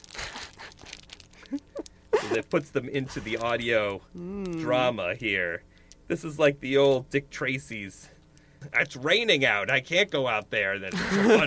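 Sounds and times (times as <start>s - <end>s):
crinkly plastic trading card pack wrapper being torn open: 0.0s - 3.7s
laughter: 1.5s - 2.5s, 10.9s - 11.4s
speech: 2.3s - 11.4s.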